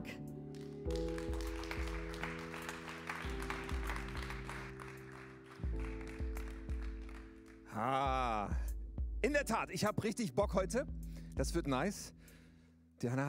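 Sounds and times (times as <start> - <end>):
audience applause: 0.6 - 7.8
speech: 7.8 - 8.6, 9.3 - 12.2, 13.0 - 13.2.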